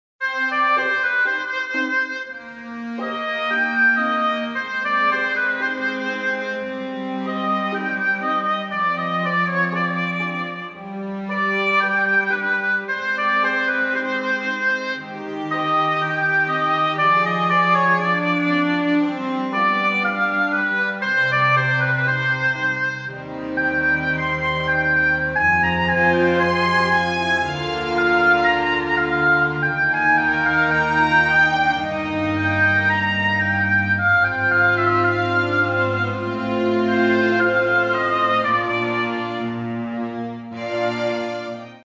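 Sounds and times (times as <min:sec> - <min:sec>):
oboe: 0:00.2 - 0:41.8.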